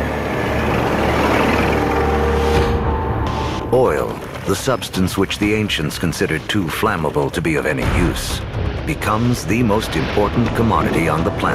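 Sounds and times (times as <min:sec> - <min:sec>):
early automobile engine idling: 0:00.0 - 0:04.8
speech: 0:03.7 - 0:11.5.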